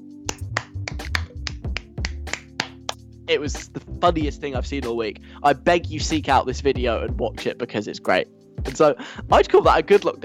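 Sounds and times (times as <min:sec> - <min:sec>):
imitation of lone awkward clapping: 0:00.3 - 0:03.0
speech: 0:03.3 - 0:10.2.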